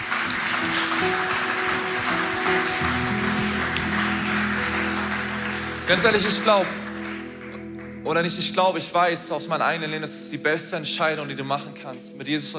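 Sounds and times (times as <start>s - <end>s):
audience applause: 0.0s - 8.0s
low sustained musical tone: 1.8s - 12.3s
speech: 5.9s - 6.8s, 8.1s - 12.5s.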